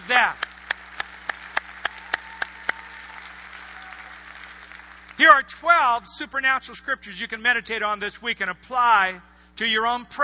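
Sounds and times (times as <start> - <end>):
speech: 0.1 - 0.4, 5.2 - 10.2
hand claps: 0.2 - 5.2.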